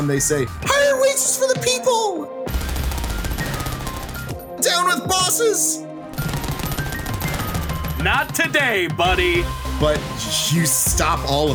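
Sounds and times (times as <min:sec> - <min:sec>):
speech: 0:00.0 - 0:02.3, 0:04.7 - 0:06.0, 0:08.0 - 0:11.5
machine gun fire: 0:02.5 - 0:04.4, 0:06.2 - 0:08.6.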